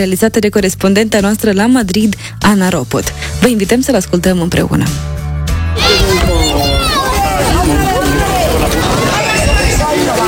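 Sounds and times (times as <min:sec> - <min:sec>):
speech: 0:00.0 - 0:05.2
happy children playing outdoors: 0:05.7 - 0:10.2.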